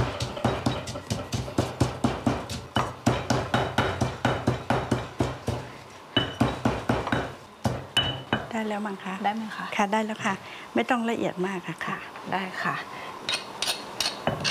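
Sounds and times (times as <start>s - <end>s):
pestle pounding sugar and salt in a mortar: 0.0s - 8.6s, 14.0s - 14.4s
speech: 8.6s - 13.1s.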